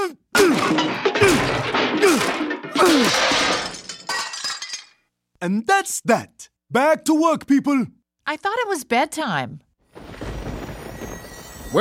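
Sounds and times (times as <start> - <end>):
hammer smashing a device: 0.4 - 4.5
speech: 5.4 - 9.6.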